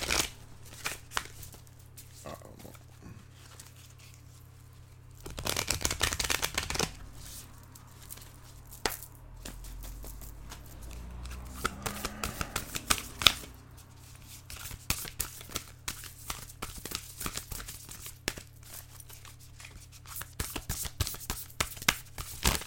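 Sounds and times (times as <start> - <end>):
Starseed Oracle cards being shuffled by hand: 0.0 - 22.6.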